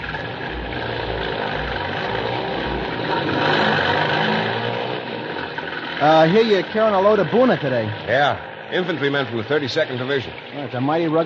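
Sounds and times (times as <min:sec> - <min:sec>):
jeep engine running in a wartime radio drama: 0:00.0 - 0:11.2
speech: 0:06.0 - 0:11.2.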